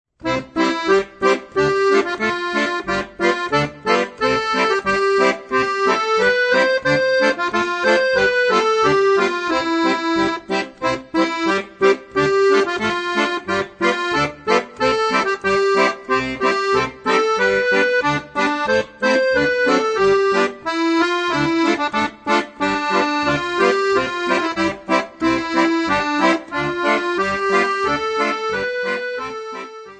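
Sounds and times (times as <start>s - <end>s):
accordion playing march and polka: 0.2s - 29.9s.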